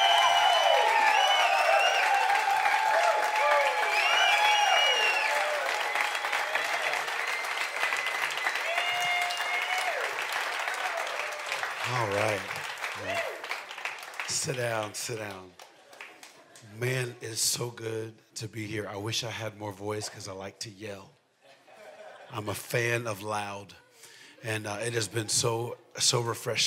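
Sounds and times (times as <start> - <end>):
cheers and whoops: 0.0 - 13.6
audience applause welcoming speaker: 0.0 - 17.1
speech: 14.4 - 15.6, 16.8 - 21.2, 22.3 - 23.8, 24.4 - 26.6
laughter: 21.4 - 22.8.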